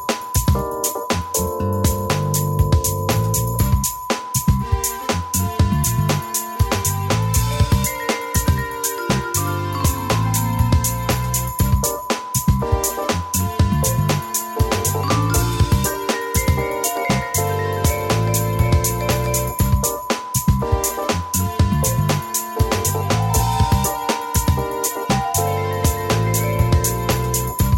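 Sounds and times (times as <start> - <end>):
smooth jazz funk melody: 0.0 - 3.9, 5.4 - 27.7.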